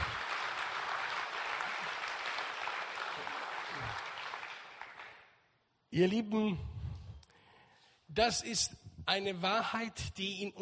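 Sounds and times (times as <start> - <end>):
audience applause: 0.0 - 5.3
speech: 5.9 - 6.7, 8.2 - 10.6.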